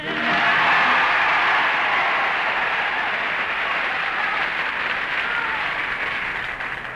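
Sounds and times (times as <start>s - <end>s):
audience applause on a talent show: 0.1s - 6.9s.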